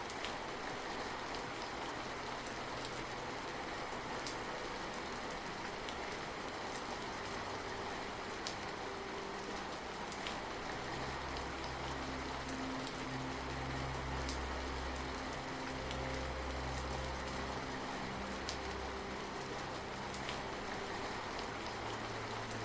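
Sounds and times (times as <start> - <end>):
gentle night rain pitter-patter: 0.0 - 22.6
relaxing music: 0.0 - 22.6.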